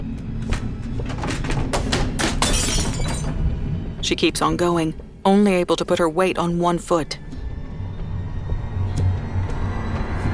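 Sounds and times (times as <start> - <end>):
low rumbling background: 0.0 - 10.3
picture frame glass shattering: 2.3 - 3.4
speech: 4.0 - 7.2.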